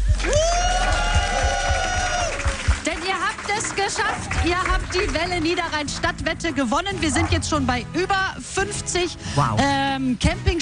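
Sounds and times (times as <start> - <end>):
audience applause: 0.0 - 7.2
speech: 3.9 - 10.5.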